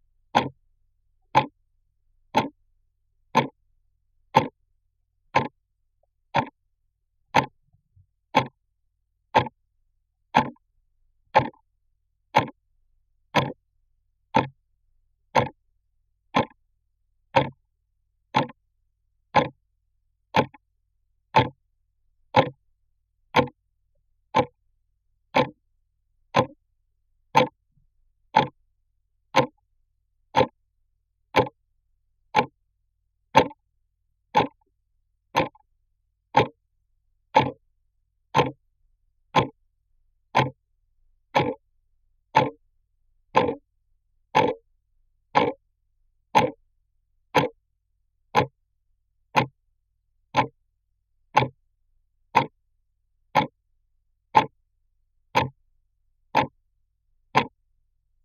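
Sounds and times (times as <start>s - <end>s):
clock ticking: 0.3s - 0.6s, 1.4s - 1.6s, 2.3s - 2.6s, 3.3s - 3.6s, 4.3s - 4.6s, 5.4s - 5.6s, 6.3s - 6.6s, 7.4s - 7.6s, 8.4s - 8.6s, 9.4s - 9.6s, 10.4s - 10.6s, 11.4s - 11.6s, 12.4s - 12.6s, 13.4s - 13.6s, 14.3s - 14.6s, 15.4s - 15.6s, 16.4s - 16.6s, 17.4s - 17.6s, 18.3s - 18.6s, 19.4s - 19.6s, 20.4s - 20.6s, 21.4s - 21.6s, 22.3s - 22.6s, 23.4s - 23.6s, 24.3s - 24.6s, 25.4s - 25.6s, 26.3s - 26.6s, 27.4s - 27.6s, 28.3s - 28.6s, 29.4s - 29.6s, 30.3s - 30.6s, 31.4s - 31.6s, 32.3s - 32.6s, 33.4s - 33.6s, 34.4s - 34.7s, 35.4s - 35.6s, 36.4s - 36.6s, 37.4s - 37.6s, 38.3s - 38.6s, 39.4s - 39.6s, 40.4s - 40.6s, 41.3s - 41.6s, 42.4s - 42.6s, 43.3s - 43.6s, 44.3s - 44.6s, 45.4s - 45.6s, 46.4s - 46.6s, 47.4s - 47.6s, 48.4s - 48.6s, 49.4s - 49.6s, 50.3s - 50.6s, 51.4s - 51.6s, 52.4s - 52.6s, 53.4s - 53.6s, 54.4s - 54.6s, 55.4s - 55.6s, 56.4s - 56.6s, 57.4s - 57.6s.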